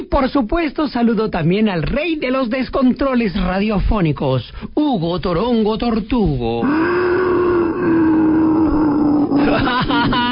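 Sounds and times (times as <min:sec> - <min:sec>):
speech: 0:00.1 - 0:07.3
voice imitating dinosaur grunts and moans: 0:06.6 - 0:09.7
laughter: 0:09.4 - 0:10.3.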